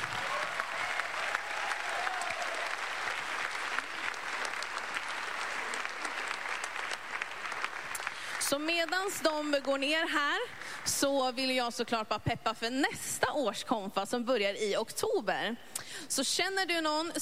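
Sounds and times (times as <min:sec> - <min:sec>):
crowd applauding: 0:00.0 - 0:11.0
speech: 0:08.5 - 0:17.2.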